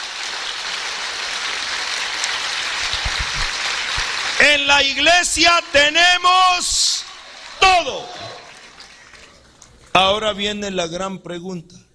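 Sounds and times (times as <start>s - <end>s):
crowd applause: 0.0s - 5.4s, 6.2s - 9.9s
speech: 4.4s - 7.0s, 7.6s - 8.3s, 10.0s - 11.8s.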